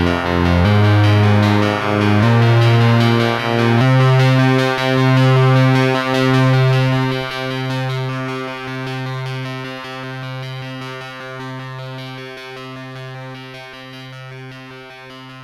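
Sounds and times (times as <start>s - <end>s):
sub oscillator drone tone: 0.0s - 9.4s.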